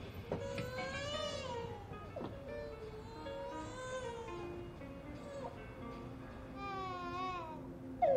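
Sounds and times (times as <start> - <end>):
very hot baby crying: 0.3 - 4.6, 5.2 - 5.7, 6.5 - 8.1.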